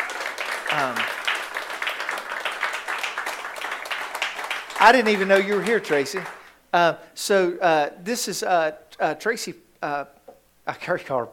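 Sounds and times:
audience applause: 0.0s - 6.5s
speech: 0.7s - 1.1s, 4.8s - 11.3s.

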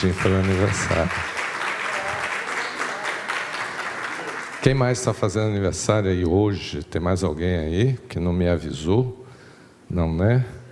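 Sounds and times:
speech: 0.0s - 1.4s, 4.6s - 9.2s, 9.9s - 10.6s
round of applause: 0.0s - 5.0s.

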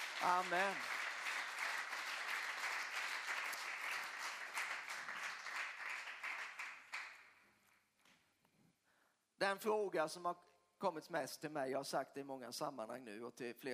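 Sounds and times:
audience clapping: 0.0s - 7.4s
speech: 0.2s - 1.0s, 9.4s - 13.7s.

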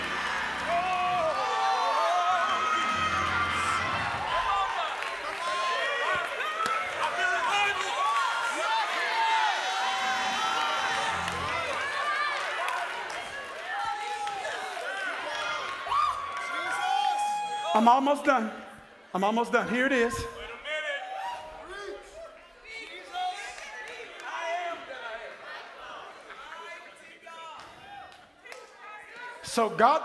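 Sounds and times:
large audience shouting and cheering: 0.0s - 30.0s
speech: 17.8s - 20.4s, 29.6s - 30.0s.

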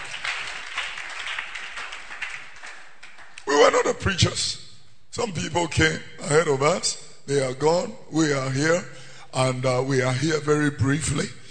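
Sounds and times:
audience clapping: 0.0s - 4.0s
speech: 3.6s - 4.6s, 5.2s - 11.4s.

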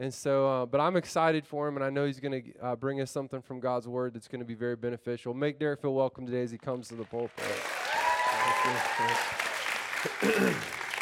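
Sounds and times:
speech: 0.0s - 7.8s, 8.6s - 10.8s
crowd applause: 7.1s - 11.0s.

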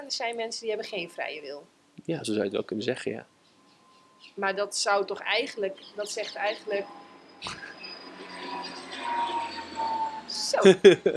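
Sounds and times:
speech: 0.1s - 3.3s, 4.2s - 7.7s, 8.5s - 11.1s
small private airplane flying over the lake near Hilversum: 5.3s - 10.6s
laughter: 10.6s - 11.1s.

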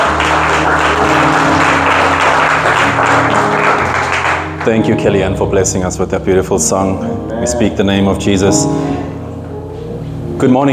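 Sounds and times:
hands clapping: 0.0s - 4.9s
speech: 4.7s - 8.9s, 10.4s - 10.7s.

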